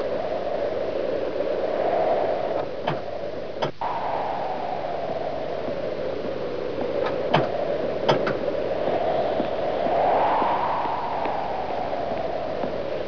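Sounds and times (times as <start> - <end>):
wind: 0.0 - 13.0.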